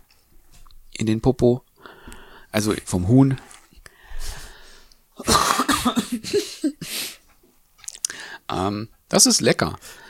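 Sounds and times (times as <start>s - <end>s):
speech: 1.0s - 1.7s, 2.5s - 3.5s, 8.5s - 10.0s
person coughing: 5.2s - 7.0s.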